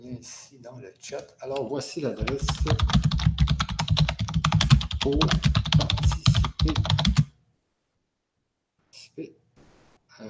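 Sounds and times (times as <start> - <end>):
speech: 0.0 - 3.3, 5.0 - 7.1
fast typing on a computer keyboard: 1.5 - 7.3.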